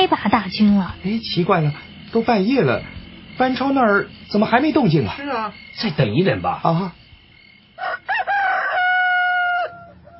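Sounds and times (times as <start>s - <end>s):
speech: 0.0s - 7.0s
rooster crowing: 7.7s - 10.1s.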